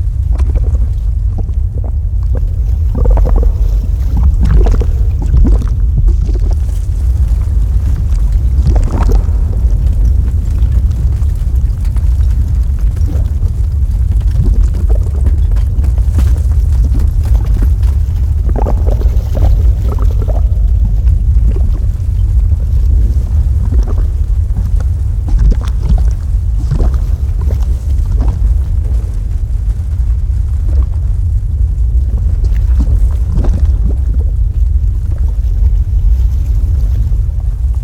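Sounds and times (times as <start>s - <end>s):
lava: 0.0s - 37.8s.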